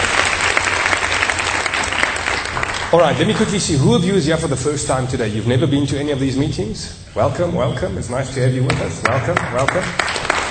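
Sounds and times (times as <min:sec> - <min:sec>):
applause at a church meeting for the worship band: 0:00.0 - 0:03.7, 0:08.7 - 0:10.5
speech: 0:02.9 - 0:10.5.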